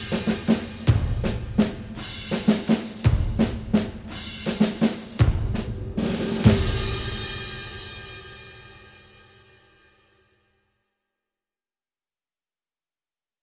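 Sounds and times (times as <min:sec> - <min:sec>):
rhythm track: 0:00.0 - 0:07.8.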